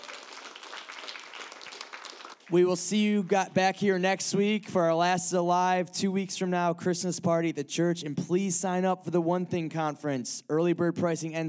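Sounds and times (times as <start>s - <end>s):
crowd applauding: 0.0s - 3.4s
speech: 2.5s - 11.4s.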